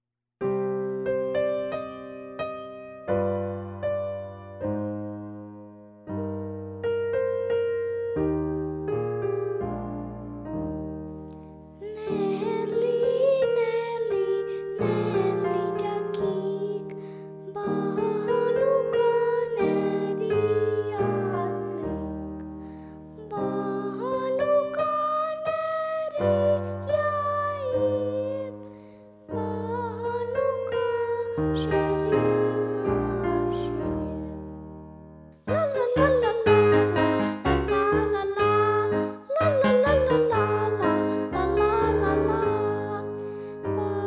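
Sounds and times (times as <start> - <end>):
piano accompaniment: 0.4 - 44.0
solo singing: 11.8 - 22.5, 23.2 - 34.5, 35.5 - 44.0.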